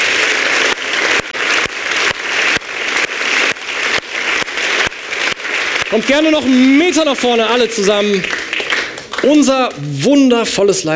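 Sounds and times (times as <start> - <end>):
sustained applause from a crowd: 0.0 - 10.0
speech: 5.9 - 8.4, 9.2 - 10.9.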